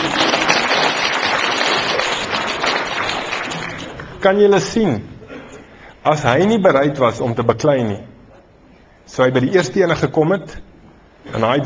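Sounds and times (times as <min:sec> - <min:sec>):
audience clapping: 0:00.0 - 0:04.2
speech: 0:04.2 - 0:05.1, 0:06.0 - 0:08.1, 0:09.1 - 0:11.6.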